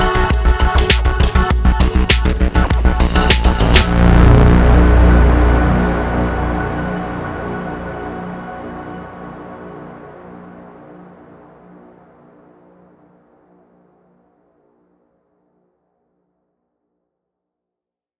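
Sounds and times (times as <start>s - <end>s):
boss verse eight-beat music intro: 0.0s - 8.8s.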